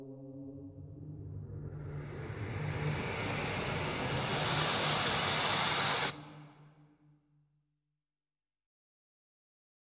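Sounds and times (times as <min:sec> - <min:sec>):
drones: 0:00.3 - 0:06.7.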